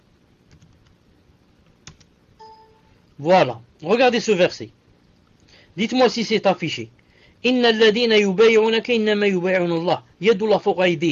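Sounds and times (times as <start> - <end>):
computer keyboard keys clicking: 0.5 - 0.9, 1.8 - 2.1
steady tone: 2.4 - 3.1
speech: 3.2 - 4.8, 5.8 - 11.1.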